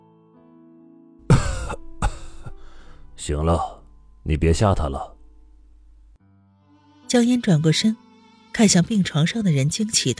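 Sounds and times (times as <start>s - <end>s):
fit of coughing: 1.2s - 3.0s
speech: 1.7s - 1.9s, 3.2s - 5.2s, 7.1s - 8.0s, 8.6s - 10.1s.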